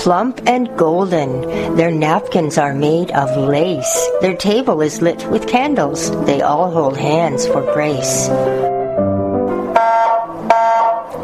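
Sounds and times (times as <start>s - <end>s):
speech: 0.0s - 8.8s
smoke alarm wailing: 9.8s - 11.1s.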